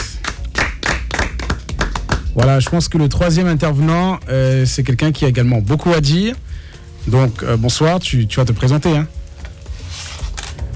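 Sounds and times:
audience clapping: 0.0s - 2.9s
speech: 2.4s - 6.5s, 7.1s - 9.2s.

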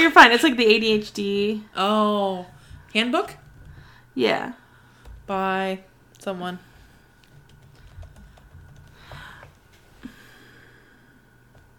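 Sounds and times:
speech: 0.2s - 3.4s, 4.2s - 4.6s, 5.3s - 6.7s
typing on a computer keyboard: 7.4s - 9.2s.

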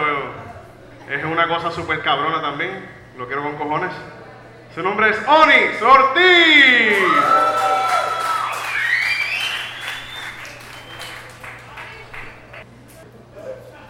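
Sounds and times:
speech: 1.1s - 4.2s, 4.8s - 7.4s
audience applause: 6.9s - 12.6s.

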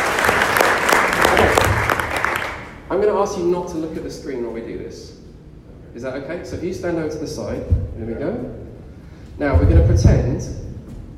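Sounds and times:
audience applause: 0.0s - 2.8s
speech: 2.9s - 5.2s, 6.0s - 8.7s, 9.4s - 10.6s.

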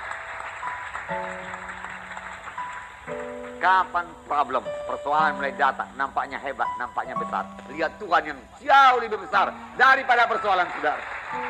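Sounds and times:
crowd applause: 0.0s - 4.2s, 9.5s - 11.4s
sustained low keyboard notes: 0.0s - 11.4s
speech: 1.1s - 1.7s, 3.1s - 11.4s.

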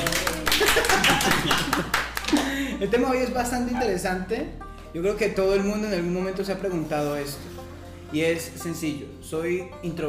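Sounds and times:
clapping: 0.0s - 2.6s
laughter: 0.0s - 2.9s
speech: 2.8s - 7.5s, 8.1s - 10.0s.

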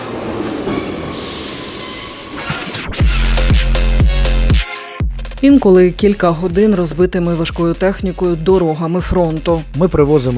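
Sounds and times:
metallic squeals: 0.0s - 3.5s
Kharkiv metro train at Derzhprom station rumbling: 0.0s - 4.4s
speech: 5.4s - 10.3s.

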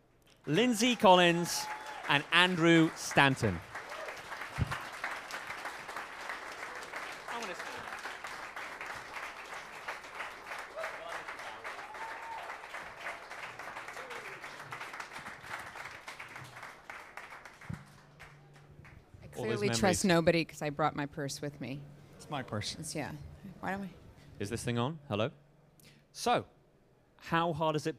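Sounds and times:
speech: 0.4s - 3.7s, 19.8s - 25.4s, 26.2s - 26.6s, 27.2s - 27.9s
audience applause at a Finding Dory filmmakers event: 0.5s - 19.8s.

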